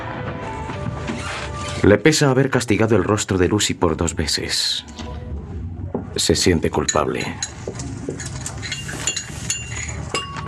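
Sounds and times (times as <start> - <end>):
speech: 1.8 - 5.1, 6.2 - 7.9
cups and plates clinking: 6.8 - 10.4.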